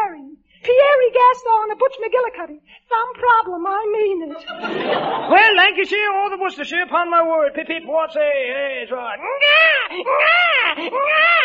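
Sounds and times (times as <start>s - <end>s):
speech: 1.1s - 11.4s
laughter: 4.3s - 5.8s
baby crying: 9.2s - 11.4s.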